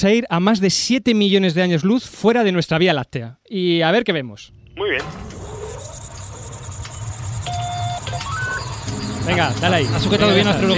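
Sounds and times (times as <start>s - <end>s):
speech: 0.0s - 5.4s, 9.3s - 10.7s
spaceship takeoff sound effect rumble: 4.4s - 10.7s
rising whistling tones: 4.5s - 10.7s
short electronic beeps: 4.7s - 10.7s.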